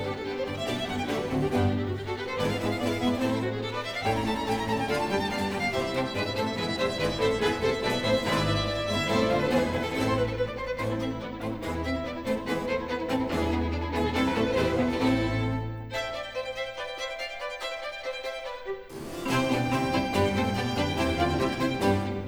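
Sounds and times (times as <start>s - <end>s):
violin concerto with strings and continuo, presto movement: 0.0s - 22.2s.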